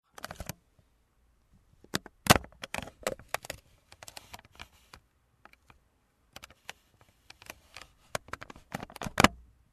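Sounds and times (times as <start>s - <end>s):
Panasonic Toot-a-Loop radio opening and closing: 0.1s - 0.6s, 1.9s - 5.8s, 6.4s - 9.4s.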